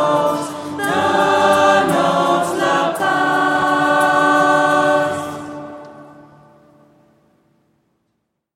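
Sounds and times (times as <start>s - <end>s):
voices singing: 0.0s - 6.3s.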